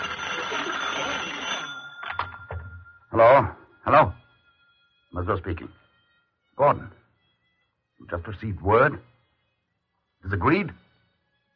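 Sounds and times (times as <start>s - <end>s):
telephone bell ringing: 0.0s - 5.0s
speech: 3.2s - 4.2s, 5.1s - 5.8s, 6.6s - 7.0s, 8.0s - 9.1s, 10.2s - 10.8s.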